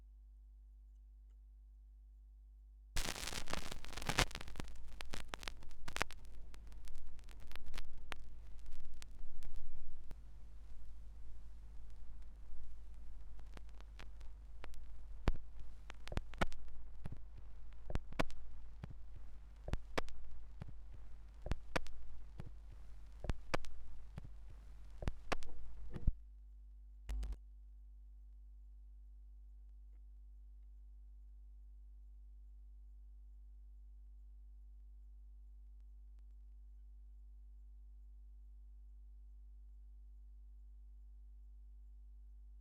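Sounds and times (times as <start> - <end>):
vinyl record noise: 3.0 - 26.2, 27.1 - 27.4.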